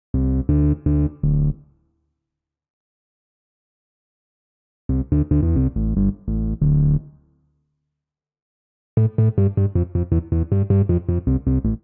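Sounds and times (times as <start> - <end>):
bassline in D minor: 0.2 - 1.6, 4.9 - 7.2, 9.0 - 11.8.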